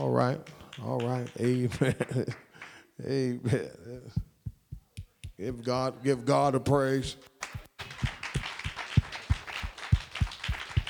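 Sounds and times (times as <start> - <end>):
speech: 0.1 - 4.3, 5.4 - 7.3
audience clapping in steady unified rhythm: 0.3 - 2.9, 7.0 - 10.8.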